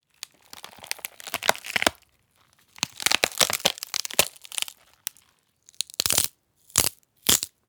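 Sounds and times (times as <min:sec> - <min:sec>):
bones breaking: 0:00.2 - 0:02.0, 0:02.7 - 0:07.5.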